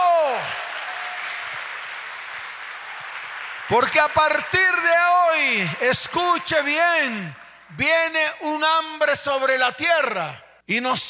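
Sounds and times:
loud audience applause: 0:00.0 - 0:07.4
speech: 0:03.7 - 0:11.0.

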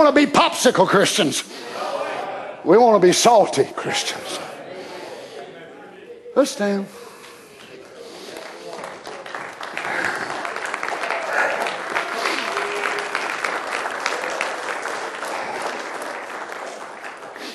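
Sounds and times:
speech: 0:00.1 - 0:01.9, 0:02.6 - 0:04.5, 0:06.4 - 0:07.0
audience clapping: 0:07.2 - 0:17.5.

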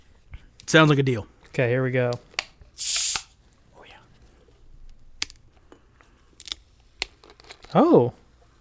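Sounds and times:
speech: 0:00.7 - 0:02.9, 0:07.7 - 0:08.2
soda bottles being popped open: 0:02.8 - 0:03.3.

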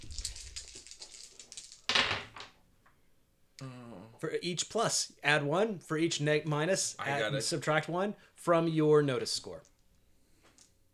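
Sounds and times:
four fate dice being rolled: 0:00.0 - 0:02.6
speech: 0:03.6 - 0:09.7.

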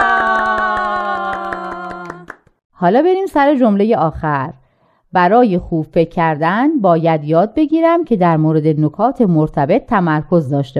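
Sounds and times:
clapping: 0:00.0 - 0:02.6
speech: 0:02.8 - 0:10.7.

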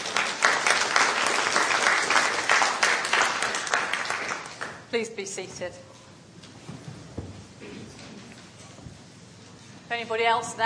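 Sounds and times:
audience applause: 0:00.0 - 0:04.9
speech: 0:04.9 - 0:06.0, 0:09.9 - 0:10.6.

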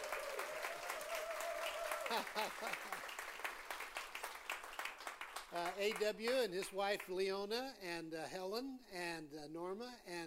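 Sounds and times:
audience clapping: 0:00.0 - 0:07.2
laughter: 0:01.5 - 0:03.1
speech: 0:02.1 - 0:03.2, 0:05.5 - 0:10.2.

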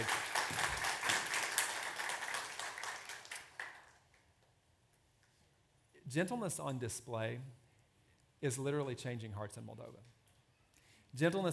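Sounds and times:
audience applause: 0:00.0 - 0:04.0
speech: 0:06.1 - 0:07.6, 0:08.4 - 0:10.2, 0:11.1 - 0:11.5.

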